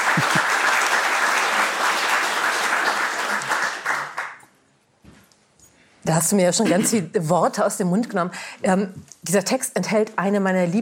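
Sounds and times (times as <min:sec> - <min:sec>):
audience applause: 0:00.0 - 0:04.4
speech: 0:06.1 - 0:10.7.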